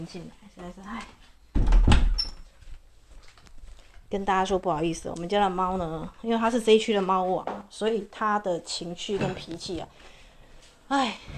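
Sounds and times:
speech: 0.0 - 1.3, 4.1 - 10.2, 10.9 - 11.3
wooden door being shut and locked: 1.6 - 2.4.

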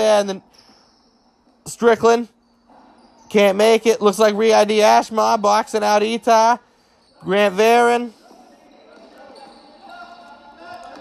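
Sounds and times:
speech: 0.0 - 0.6, 1.6 - 2.4, 3.3 - 6.6, 7.2 - 8.2
crowd noise at basketball game: 1.7 - 10.9
basketball being dribbled on court: 8.3 - 10.9.

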